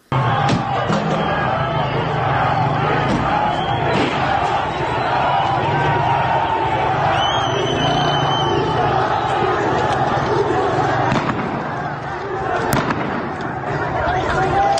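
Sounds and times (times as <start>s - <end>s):
large street protest crowd shouting and chanting: 0.0s - 14.7s
gunfire: 3.0s - 4.6s, 10.9s - 12.0s, 12.6s - 13.5s.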